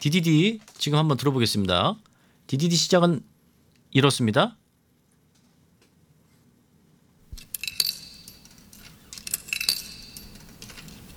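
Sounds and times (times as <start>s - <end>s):
speech: 0.0s - 3.3s, 3.9s - 4.6s
coins inserted into vending machine: 7.4s - 11.1s.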